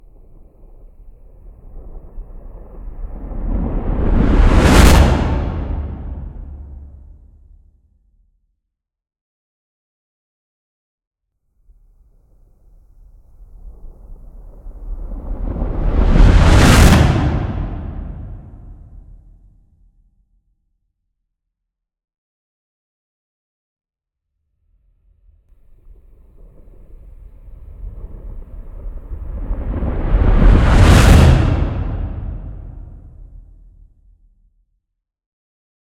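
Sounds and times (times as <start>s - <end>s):
reverse explosion: 1.6s - 7.4s, 14.3s - 19.2s, 27.0s - 33.5s.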